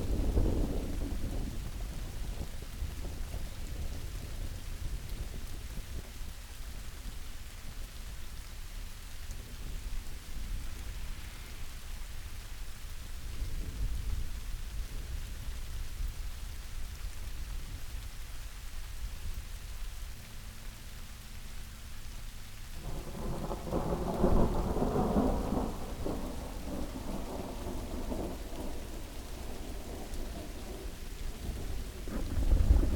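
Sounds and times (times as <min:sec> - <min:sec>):
rain: 0:00.0 - 0:32.9
thunder: 0:10.4 - 0:12.7, 0:22.8 - 0:32.9.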